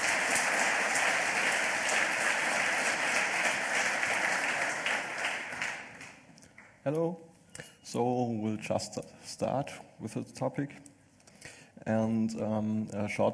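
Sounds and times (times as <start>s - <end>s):
audience applause: 0.0s - 6.2s
speech: 6.8s - 7.3s, 7.9s - 10.9s, 11.8s - 13.3s.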